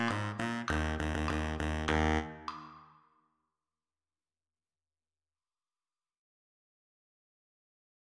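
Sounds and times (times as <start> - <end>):
baritone saxophone at slower tempo: 0.0 - 2.6.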